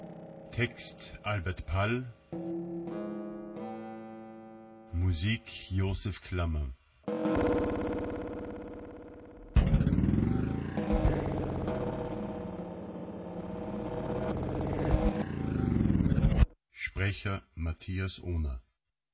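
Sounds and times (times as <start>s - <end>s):
speech: 0.6s - 2.6s, 5.1s - 8.1s, 17.2s - 18.7s
old car engine driving: 7.2s - 16.4s.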